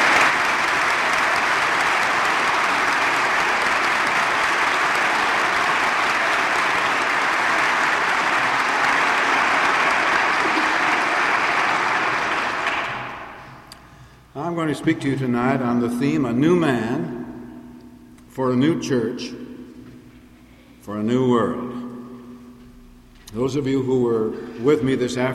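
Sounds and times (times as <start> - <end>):
audience clapping in appreciation: 0.0 - 13.7
speech: 14.7 - 17.2, 18.4 - 19.4, 20.9 - 21.7, 23.3 - 25.3.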